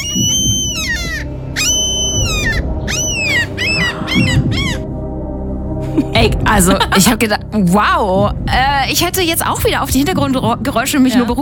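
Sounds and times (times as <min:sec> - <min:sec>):
seagull calling: 0:00.0 - 0:04.9
speech: 0:06.2 - 0:11.3.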